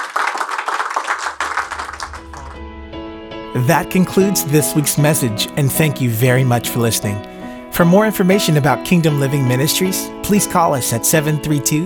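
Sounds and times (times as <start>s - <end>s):
church congregation clapping at a Kingdom Living Ministries service: 0.0s - 2.8s
tonal musical notes: 1.4s - 10.9s
speech: 3.6s - 11.8s.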